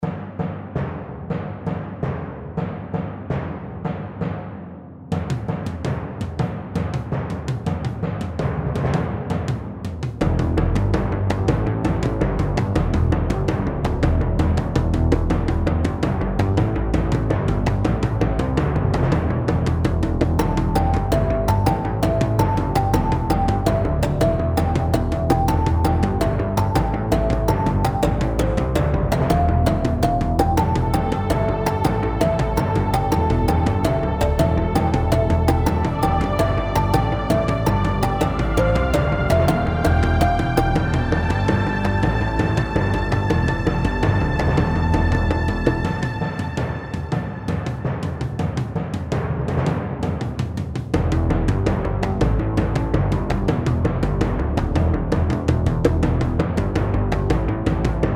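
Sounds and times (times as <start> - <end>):
layered percussion: 0.0 - 58.1.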